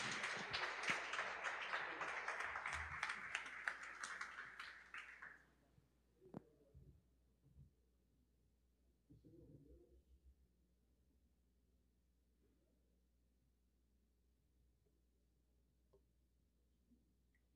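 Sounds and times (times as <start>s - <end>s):
audience applauding: 0.0s - 5.4s.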